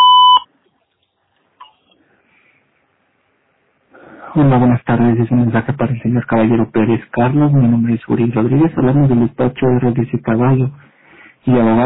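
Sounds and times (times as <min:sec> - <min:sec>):
voicemail recording electronic beep tone: 0:00.0 - 0:00.4
speech: 0:04.4 - 0:11.8.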